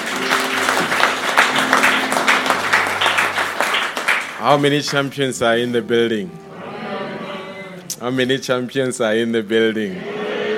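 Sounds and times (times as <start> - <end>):
audience applause: 0.0 - 5.1
speech: 4.4 - 6.4, 8.0 - 10.2.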